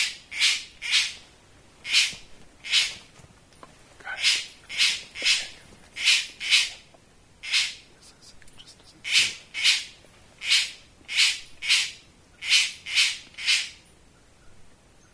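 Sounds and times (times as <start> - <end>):
bird buzzy squawks: 0.0 - 1.2, 1.8 - 3.0, 4.2 - 13.8.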